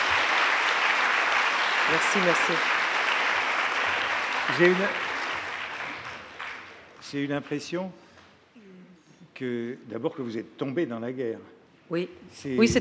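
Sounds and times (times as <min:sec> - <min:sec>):
audience applause: 0:00.0 - 0:07.3
speech: 0:01.9 - 0:02.8, 0:04.5 - 0:05.0, 0:07.0 - 0:08.0, 0:09.4 - 0:12.8.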